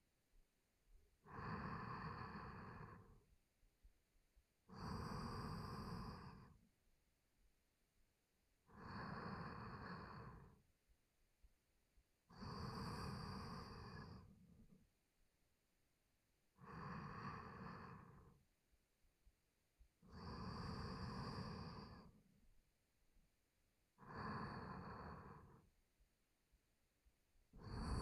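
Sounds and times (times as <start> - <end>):
sleep breathing through nose, left side: 1.3 - 3.2, 4.7 - 6.6, 8.8 - 10.6, 12.4 - 14.5, 16.6 - 18.4, 20.1 - 22.2, 24.0 - 25.7, 27.6 - 28.0.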